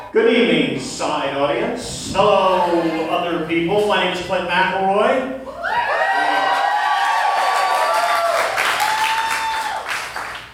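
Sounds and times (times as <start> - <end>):
speech: 0.1 - 5.8
crowd cheering and whooping: 5.4 - 10.3
crowd applauding: 5.8 - 10.5.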